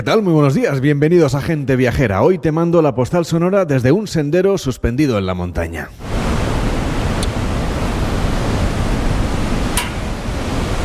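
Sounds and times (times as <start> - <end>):
speech: 0.0 - 6.1
rushing mountain river and waterfalls: 6.0 - 10.8.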